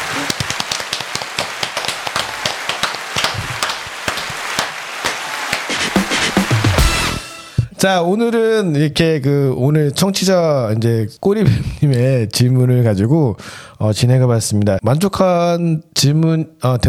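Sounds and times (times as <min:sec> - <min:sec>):
people clapping: 0:00.0 - 0:07.4
speech: 0:07.8 - 0:16.8.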